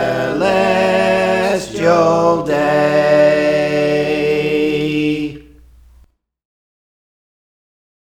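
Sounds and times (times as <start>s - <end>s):
soprano singing: 0.0s - 5.6s.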